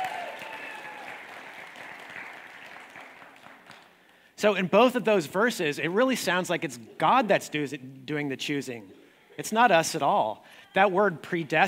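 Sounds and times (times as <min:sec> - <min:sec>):
audience applause: 0:00.0 - 0:04.0
speech: 0:04.4 - 0:11.6.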